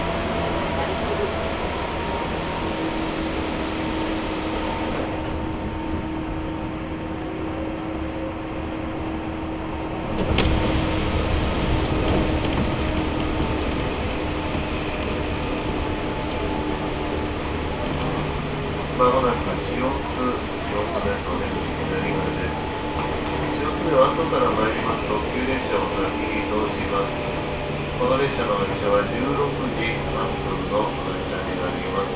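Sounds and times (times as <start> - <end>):
Chuo Line local train low hum at Shiotsu station: 0.0 - 32.1
voices chattering: 18.9 - 32.1.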